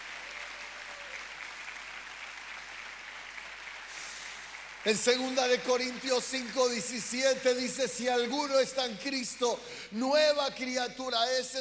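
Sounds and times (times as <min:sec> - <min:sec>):
audience applause: 0:00.0 - 0:08.2
speech: 0:04.8 - 0:11.5.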